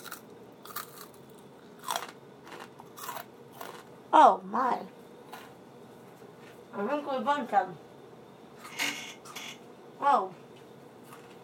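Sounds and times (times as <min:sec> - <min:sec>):
biting into a crunchy french fry: 0:00.0 - 0:03.9
speech: 0:04.1 - 0:05.0, 0:06.8 - 0:07.8, 0:10.0 - 0:10.4.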